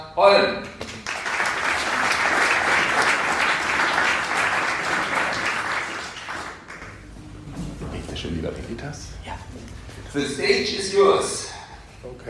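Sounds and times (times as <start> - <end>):
speech: 0.2 - 0.9, 8.3 - 11.6
audience applause welcoming a speaker: 0.8 - 7.1.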